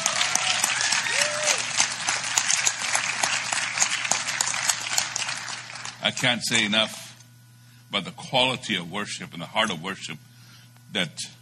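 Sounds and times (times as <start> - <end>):
audience applause: 0.0 - 6.0
speech: 6.0 - 7.0, 7.9 - 10.3, 10.9 - 11.4.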